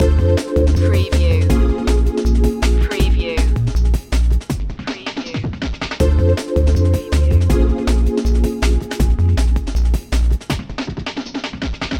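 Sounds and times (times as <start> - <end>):
town beat loop: 0.0 - 10.6.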